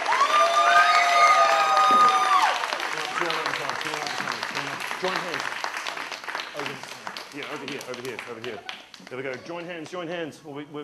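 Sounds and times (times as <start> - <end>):
crowd cheering: 0.0 - 6.8
crowd applauding: 0.0 - 9.9
speech: 7.7 - 10.8.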